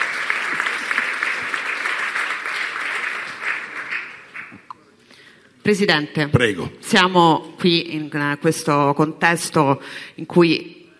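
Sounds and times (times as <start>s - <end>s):
applause: 0.0s - 4.7s
speech: 5.6s - 10.8s.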